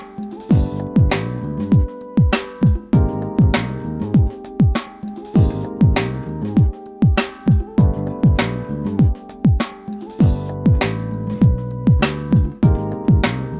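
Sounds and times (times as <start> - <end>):
steel drum beat music: 0.0 - 13.5.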